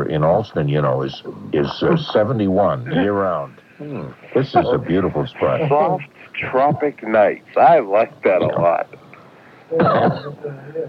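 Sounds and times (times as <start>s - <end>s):
speech: 0.1s - 9.0s, 9.7s - 10.8s
cough into a microphone: 9.8s - 10.4s.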